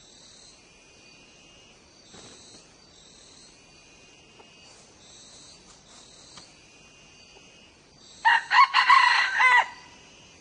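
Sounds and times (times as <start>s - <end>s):
faint high insect tone: 0.0s - 10.3s
red junglefowl crowing: 8.2s - 10.0s.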